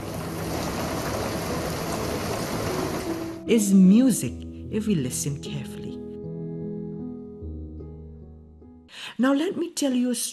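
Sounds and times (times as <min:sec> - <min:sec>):
rain falling: 0:00.0 - 0:03.4
speech: 0:03.5 - 0:05.8, 0:09.2 - 0:10.3.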